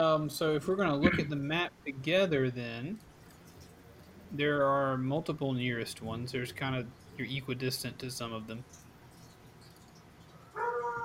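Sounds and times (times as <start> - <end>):
speech: 0.0 - 3.1, 4.3 - 8.8
dogs barking: 10.5 - 11.0.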